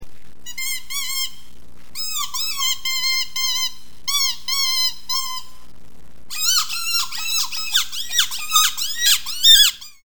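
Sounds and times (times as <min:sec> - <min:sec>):
rodent squeaking: 0:02.0 - 0:05.5, 0:06.3 - 0:10.0.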